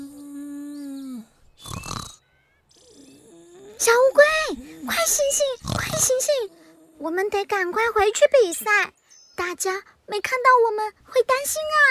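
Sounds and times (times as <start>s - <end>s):
snoring: 1.6s - 2.2s, 5.5s - 7.0s
speech: 3.8s - 4.2s, 5.1s - 11.9s.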